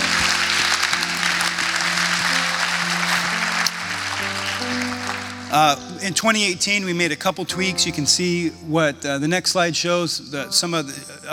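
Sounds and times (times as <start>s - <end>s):
loud crowd applause: 0.0s - 5.9s
speech: 5.5s - 11.3s.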